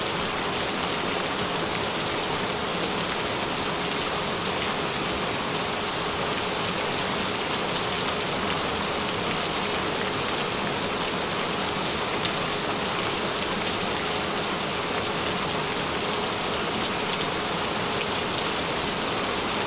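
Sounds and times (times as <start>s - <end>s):
gentle rain: 0.0s - 19.6s.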